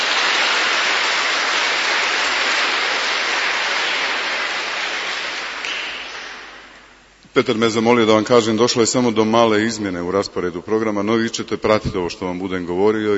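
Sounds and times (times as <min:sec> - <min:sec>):
audience applause after a traditional Michaelmas concert: 0:00.0 - 0:06.8
speech: 0:07.4 - 0:13.1.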